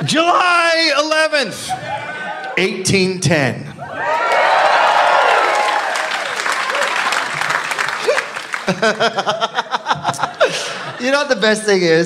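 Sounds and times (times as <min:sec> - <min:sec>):
speech: 0:00.0 - 0:03.7, 0:08.7 - 0:12.0
live audience clapping: 0:04.0 - 0:09.9
laughter: 0:07.2 - 0:11.5.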